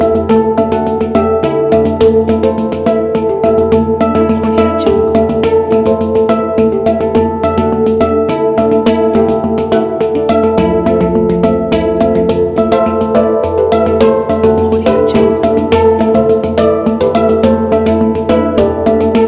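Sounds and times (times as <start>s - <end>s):
hang drum song: 0.0s - 19.2s.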